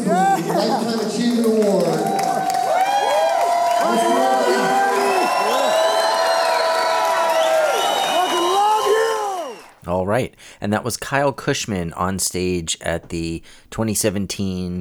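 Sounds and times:
crowd applause: 0.0 - 9.8
speech: 10.2 - 14.7.

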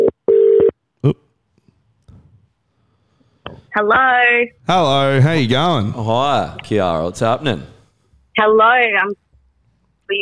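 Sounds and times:
phone dialing tones: 0.0 - 0.7
speech: 1.0 - 1.2, 3.7 - 7.8, 8.4 - 9.2.

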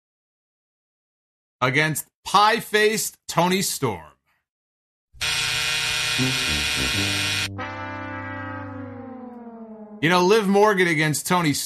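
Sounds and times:
speech: 1.6 - 4.1, 6.2 - 7.8, 10.0 - 11.6
harsh buzzer: 5.2 - 9.0.

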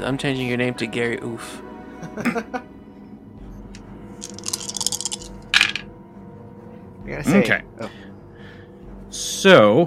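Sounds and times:
speech: 0.0 - 2.7, 7.1 - 8.0, 9.2 - 9.8
many dice being rolled: 4.2 - 5.9.

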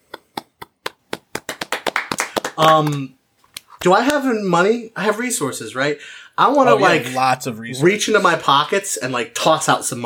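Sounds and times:
several people clapping: 0.4 - 4.2
speech: 2.6 - 3.2, 3.8 - 10.0.

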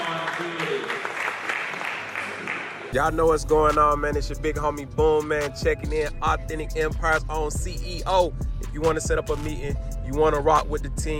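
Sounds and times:
audience applause: 0.0 - 2.9
speech: 2.9 - 11.1.

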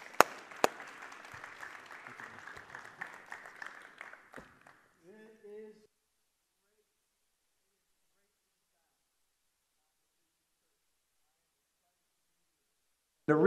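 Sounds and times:
audience applause welcoming a speaker at a church service: 0.0 - 5.0.

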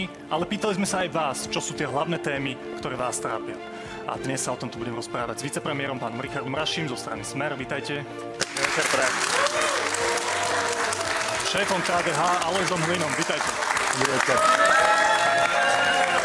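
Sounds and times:
speech: 0.0 - 9.8, 11.5 - 15.1
rhythmic audience applause: 8.3 - 16.2.

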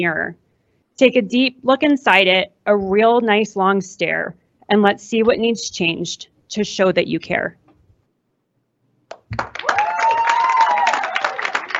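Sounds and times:
speech: 0.0 - 0.4, 1.0 - 7.6, 9.3 - 9.6
applause from teachers in the room: 9.1 - 11.7
person cheering: 9.6 - 11.7.

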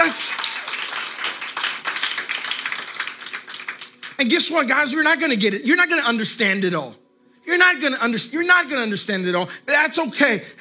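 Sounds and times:
audience clapping: 0.0 - 4.5
speech: 4.2 - 10.5.

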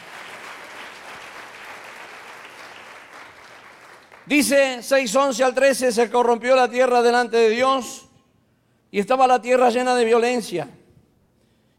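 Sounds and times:
audience applause: 0.0 - 4.4
speech: 4.3 - 8.1, 8.9 - 10.8.

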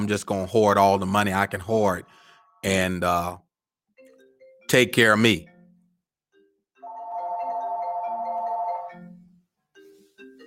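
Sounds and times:
speech: 0.0 - 3.4, 4.7 - 5.5
telephone melodic electronic ringtone with an incoming call: 6.8 - 9.4.

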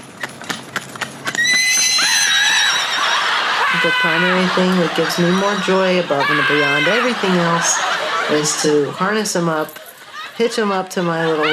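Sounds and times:
pony stallion hooves clopping at a trot: 0.0 - 3.0
pony stallion whinnying: 1.2 - 4.4
laughter: 2.0 - 11.5
speech: 3.8 - 9.8, 10.4 - 11.5.

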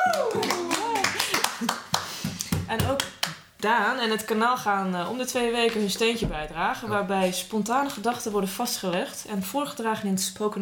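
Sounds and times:
people whooping and calling out: 0.0 - 1.3
audience clapping for a new announcement: 0.0 - 3.5
speech: 0.1 - 0.6, 3.6 - 10.5.

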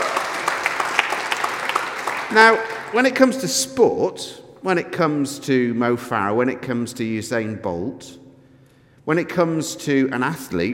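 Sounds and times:
audience applause: 0.0 - 3.1
speech: 2.3 - 8.2, 9.1 - 10.7.

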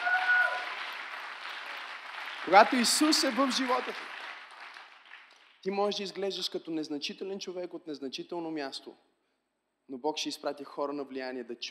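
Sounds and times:
audience clapping hands: 0.0 - 5.7
speech: 2.4 - 4.1, 5.6 - 9.1, 9.9 - 11.6.

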